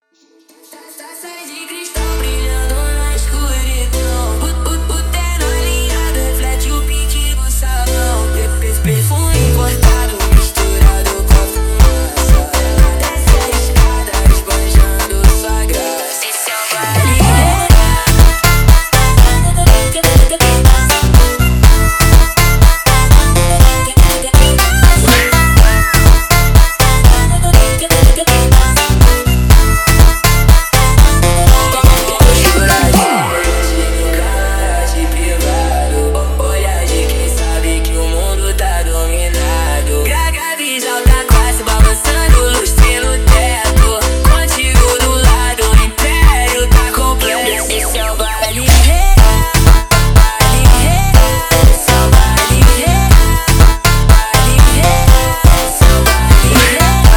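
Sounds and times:
slowed phonk music: 1.9s - 57.1s.

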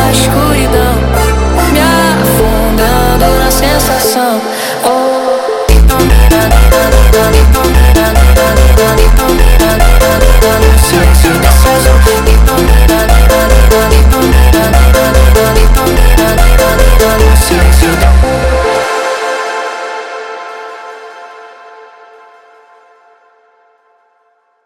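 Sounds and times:
sped-up montagem funk music: 0.0s - 19.3s.

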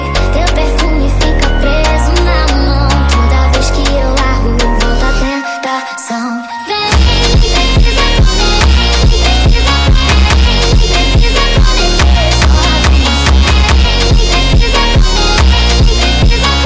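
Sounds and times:
sped up funk music: 0.2s - 5.3s, 6.9s - 16.6s.

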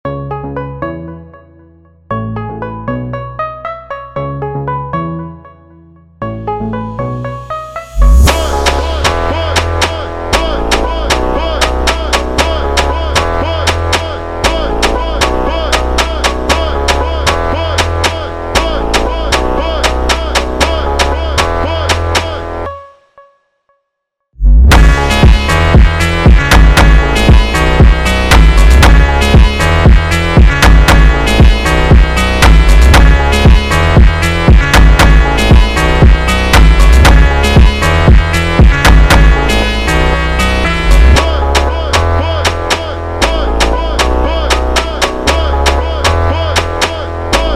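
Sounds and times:
slowed montagem phonk mashup: 6.2s - 22.9s, 24.4s - 47.5s.

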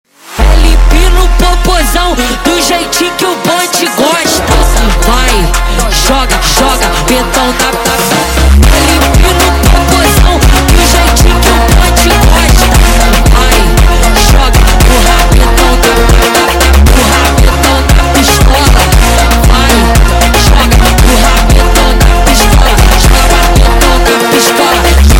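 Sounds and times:
sped up brega music: 0.2s - 25.1s.

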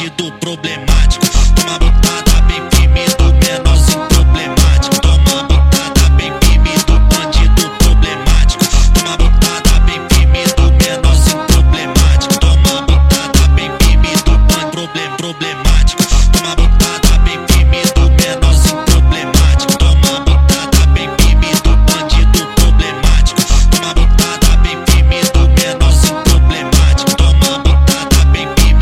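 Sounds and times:
sped-up funk violin music: 0.0s - 28.7s.

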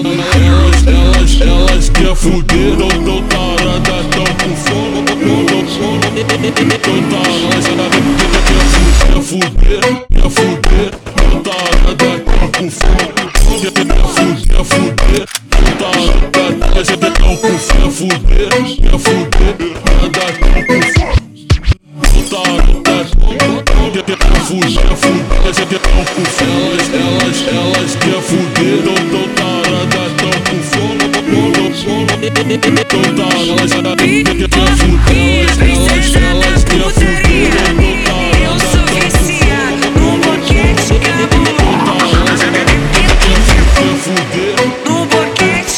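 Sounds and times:
super slowed funk music: 0.1s - 45.7s.

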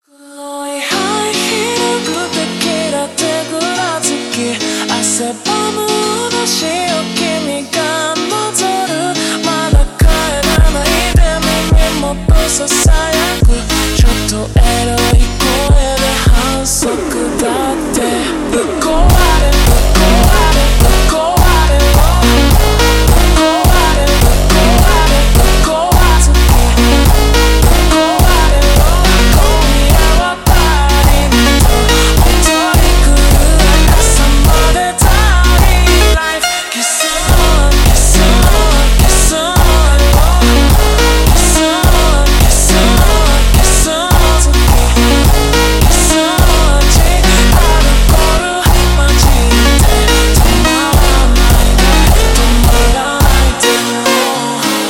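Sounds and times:
super slowed phonk music: 0.9s - 54.8s.

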